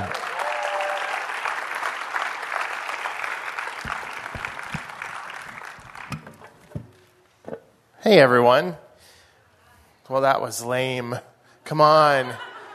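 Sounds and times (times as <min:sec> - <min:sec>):
audience applause: 0:00.0 - 0:06.2
speech: 0:08.1 - 0:08.8, 0:10.1 - 0:12.5
laughter: 0:12.2 - 0:12.7.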